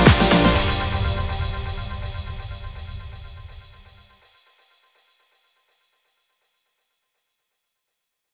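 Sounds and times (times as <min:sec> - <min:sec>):
instrumental music: 0:00.0 - 0:03.8.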